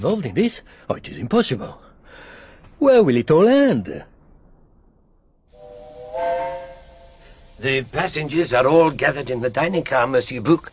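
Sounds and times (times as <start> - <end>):
speech: 0.0 - 4.1, 7.6 - 10.7
steam locomotive engine getting up steam: 5.6 - 10.7.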